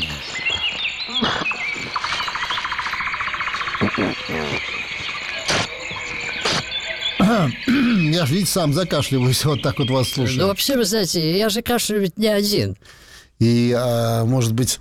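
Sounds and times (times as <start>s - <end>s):
waxwings, thrushes, finches and larks singing: 0.0s - 13.4s
speech: 4.0s - 4.7s, 7.3s - 14.8s.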